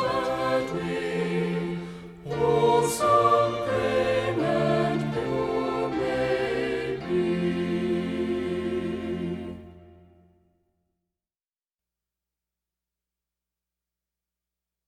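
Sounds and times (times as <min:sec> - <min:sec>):
hymn sung with instruments: 0:00.0 - 0:10.2.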